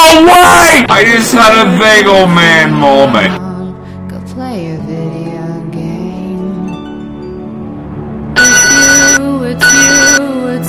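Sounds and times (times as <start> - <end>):
speech: 1.0 - 3.5
mobile phone ringtone for an incoming call: 8.4 - 10.6.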